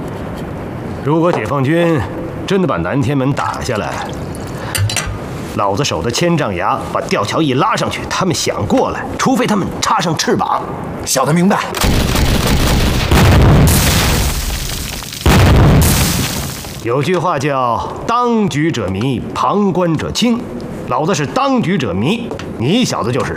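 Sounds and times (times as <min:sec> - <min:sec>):
people talking: 0:01.0 - 0:04.1, 0:05.6 - 0:11.8, 0:16.9 - 0:23.3
artillery shells exploding during a shelling of mountain positions: 0:11.8 - 0:16.9.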